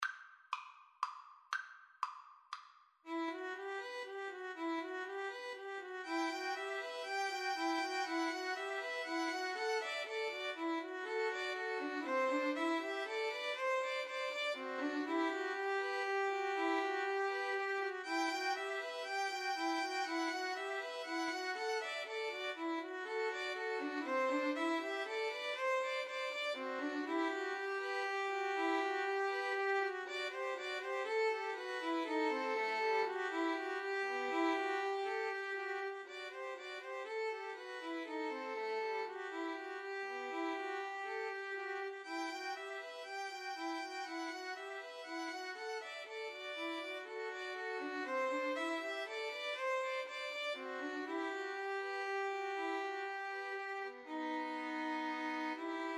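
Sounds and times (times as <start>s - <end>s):
violin trio: 3.1s - 55.9s.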